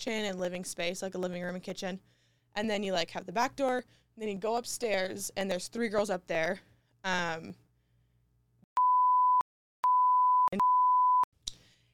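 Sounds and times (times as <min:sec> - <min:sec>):
speech: 0:00.0 - 0:07.6
censor bleeps: 0:08.8 - 0:11.3.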